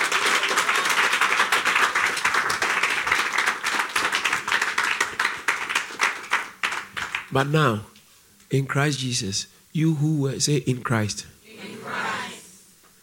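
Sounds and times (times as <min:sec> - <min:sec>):
audience clapping: 0:00.0 - 0:07.5
speech: 0:07.3 - 0:07.9, 0:08.5 - 0:12.0.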